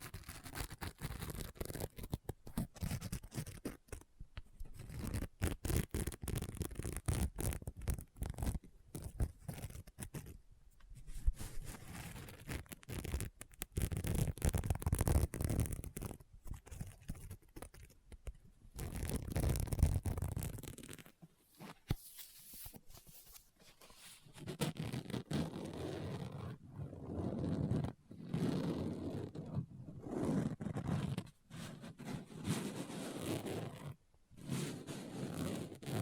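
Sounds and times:
tapping and scratching on a book: 0.0 - 10.4, 11.6 - 36.0
page turning: 21.6 - 25.2.

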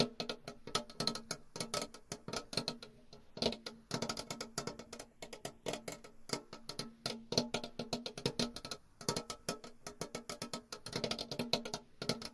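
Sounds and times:
quick sharp tapping and scratching: 0.0 - 12.3.

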